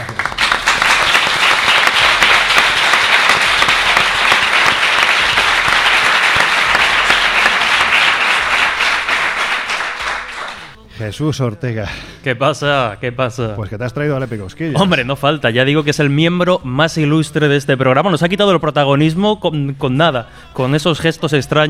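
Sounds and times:
audience applause: 0:00.0 - 0:10.8
speech: 0:11.0 - 0:21.6.

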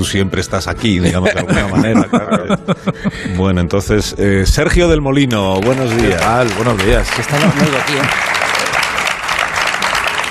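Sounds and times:
speech: 0:00.0 - 0:08.4
laughter: 0:00.9 - 0:03.5, 0:05.8 - 0:10.1
audience applause: 0:05.4 - 0:10.3.

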